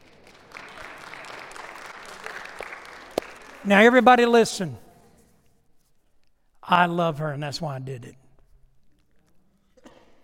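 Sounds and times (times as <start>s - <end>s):
audience applause: 0.0s - 4.0s
speech: 3.6s - 4.8s, 6.7s - 8.2s.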